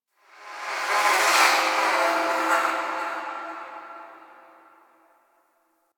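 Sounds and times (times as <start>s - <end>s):
spirit chatter ambience: 0.6s - 4.9s.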